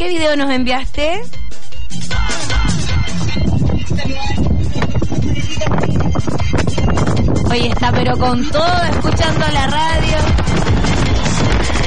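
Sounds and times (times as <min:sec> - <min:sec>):
speech: 0:00.0 - 0:02.5, 0:07.5 - 0:10.7
strong wind: 0:02.5 - 0:11.8.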